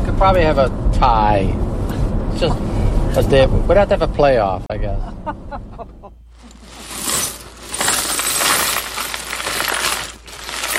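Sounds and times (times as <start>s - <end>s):
speech: 0.2s - 1.7s, 2.3s - 6.0s
small pieces of glass being sorted: 6.4s - 10.7s.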